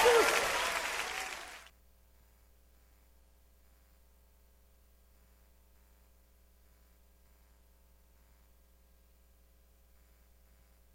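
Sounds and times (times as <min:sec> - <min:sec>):
applause: 0:00.0 - 0:01.7.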